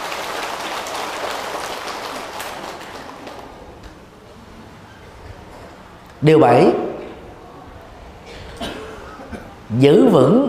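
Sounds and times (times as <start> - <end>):
loud round of crowd applause: 0.0 - 4.1
speech: 6.2 - 6.8, 9.8 - 10.4.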